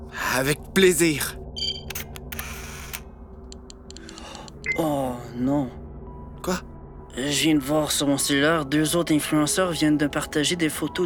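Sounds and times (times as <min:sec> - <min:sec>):
speech: 0:00.4 - 0:01.4, 0:04.8 - 0:05.8, 0:06.4 - 0:11.0
camera shutter clicks taking a selfie: 0:01.9 - 0:03.0.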